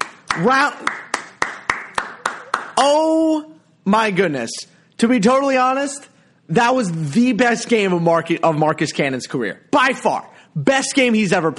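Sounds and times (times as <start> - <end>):
hands clapping: 0.0 - 3.0
speech: 0.4 - 1.1, 2.8 - 11.5.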